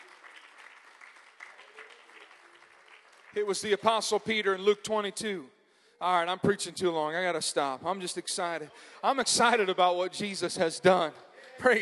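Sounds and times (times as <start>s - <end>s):
audience clapping hands: 0.0s - 4.5s
speech: 3.4s - 11.8s.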